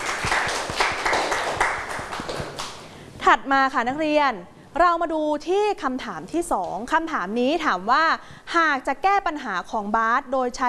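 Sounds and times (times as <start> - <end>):
applause: 0.0 - 2.9
speech: 3.2 - 10.6.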